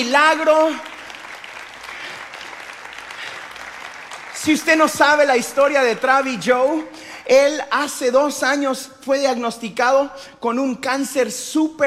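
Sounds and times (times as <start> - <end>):
speech: 0.0 - 0.9, 4.4 - 11.8
audience applause welcoming a guest: 0.4 - 6.8.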